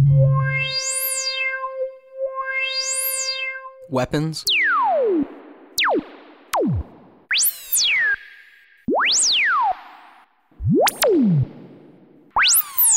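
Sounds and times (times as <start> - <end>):
Moog Concertmate MG1 analog synth force-field tones swooping in pitch: 0.1 - 8.2, 10.6 - 12.9
speech: 3.9 - 4.7.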